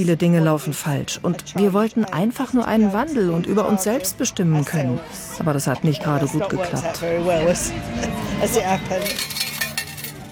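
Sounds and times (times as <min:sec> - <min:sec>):
speech: 0:00.0 - 0:09.4
low murmur of voices: 0:00.0 - 0:10.2
coins clinking out of a change machine: 0:08.9 - 0:10.2.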